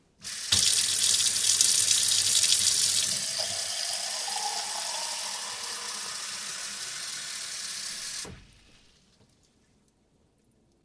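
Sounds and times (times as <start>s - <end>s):
water running from a tap into a glass: 0.5s - 8.4s.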